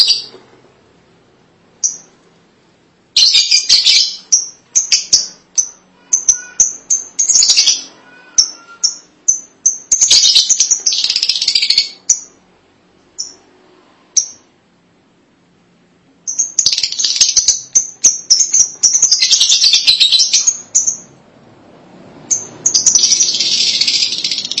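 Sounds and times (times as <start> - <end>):
lovebird chirping and chattering: 0.0 - 0.4, 1.8 - 2.1, 3.1 - 12.4, 13.1 - 13.5, 14.2 - 14.5, 16.2 - 21.2, 22.2 - 24.5.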